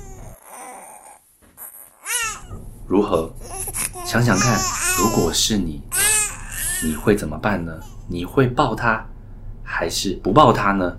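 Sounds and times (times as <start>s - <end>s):
baby crying in a stroller: 0.0s - 2.6s, 3.4s - 7.1s, 7.7s - 8.1s
speech: 2.9s - 5.9s, 6.8s - 9.1s, 9.8s - 10.9s.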